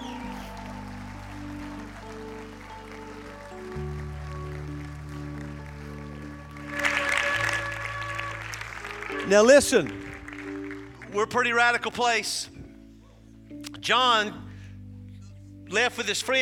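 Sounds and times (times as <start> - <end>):
crowd cheer: 0.0 - 11.2
audience clapping: 0.0 - 12.0
sustained organ-like chords: 0.0 - 16.4
speech: 9.3 - 10.0, 11.1 - 12.5, 13.8 - 14.4, 15.7 - 16.4.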